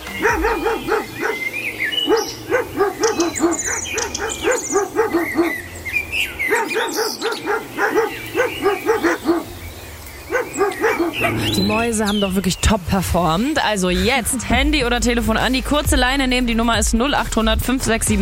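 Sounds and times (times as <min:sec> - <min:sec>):
dogs barking a song melody: 0:00.0 - 0:12.2
speech: 0:11.7 - 0:18.2.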